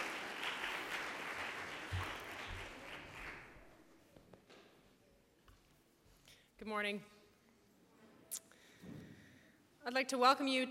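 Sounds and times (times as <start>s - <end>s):
audience clapping to welcome a speaker to a biblical studies lecture: 0.0s - 3.8s
speech: 6.6s - 7.2s, 9.9s - 10.6s.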